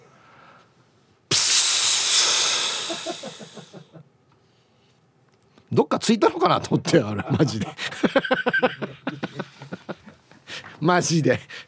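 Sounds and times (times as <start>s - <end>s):
voice imitating a bus air brake hiss: 1.3s - 3.8s
speech: 2.9s - 4.2s, 5.7s - 9.2s, 10.8s - 11.6s
laughter: 7.1s - 10.2s.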